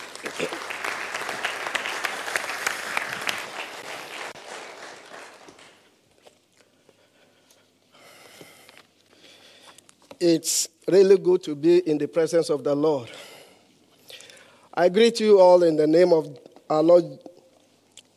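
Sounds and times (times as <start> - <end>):
church congregation applauding a guest speaker: 0.0 - 6.0
speech: 10.2 - 13.2, 14.8 - 17.3.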